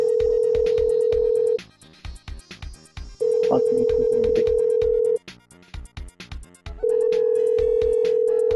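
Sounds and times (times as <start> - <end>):
ringback tone on an outgoing telephone call: 0.0 - 1.6, 3.2 - 5.2, 6.8 - 8.5.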